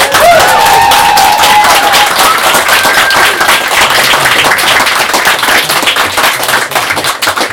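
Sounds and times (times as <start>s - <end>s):
whoops and cheers: 0.0s - 3.7s
large audience applause: 0.0s - 7.5s.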